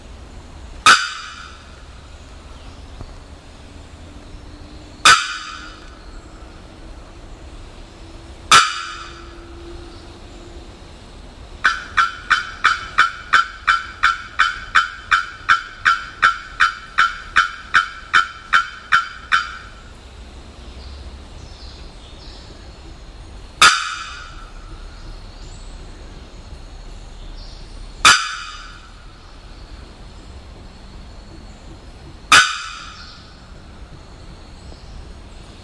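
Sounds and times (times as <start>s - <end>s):
Bearded Bellbird calling: 0.8s - 2.5s, 5.0s - 6.6s, 8.5s - 9.6s, 11.6s - 19.9s, 23.6s - 27.3s, 28.0s - 29.9s, 32.3s - 35.0s.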